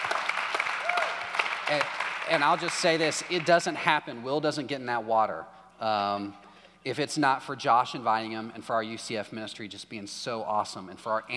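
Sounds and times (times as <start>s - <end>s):
audience clapping: 0.0s - 3.8s
speech: 1.7s - 11.3s.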